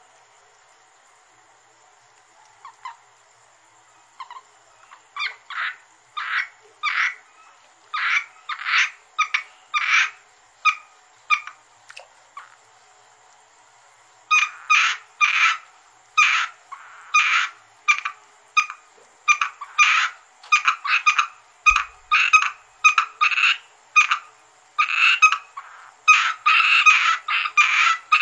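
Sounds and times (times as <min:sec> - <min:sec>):
Asian grass frog Rana limnocharis croaking in short raspy bursts: 0:04.2 - 0:07.3, 0:07.9 - 0:12.6, 0:14.3 - 0:28.2.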